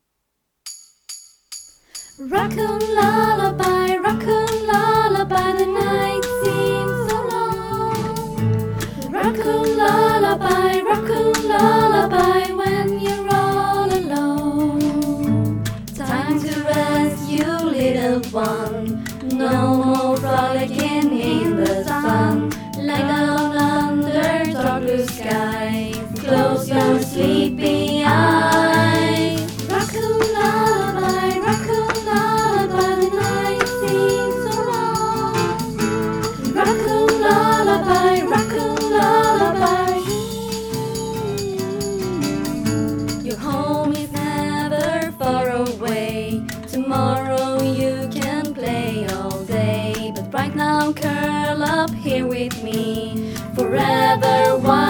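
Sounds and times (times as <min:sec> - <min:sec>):
lullaby: 0:01.9 - 0:54.8.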